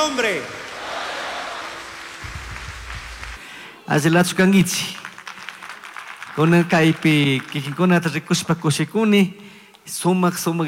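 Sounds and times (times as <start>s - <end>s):
speech: 0.0s - 0.6s, 3.9s - 5.1s, 6.4s - 10.6s
crowd applauding: 0.0s - 8.5s.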